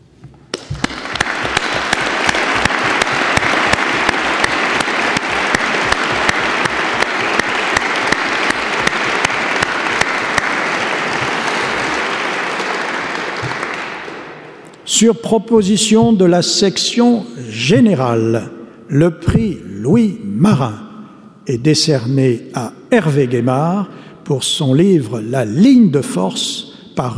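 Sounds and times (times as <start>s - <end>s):
audience applause for award winners: 0.6s - 14.6s
speech: 15.0s - 20.8s, 21.5s - 27.1s.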